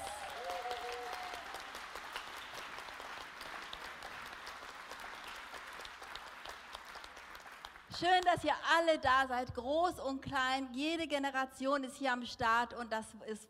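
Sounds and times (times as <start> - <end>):
audience applause: 0.0 - 7.9
speech: 8.0 - 13.4.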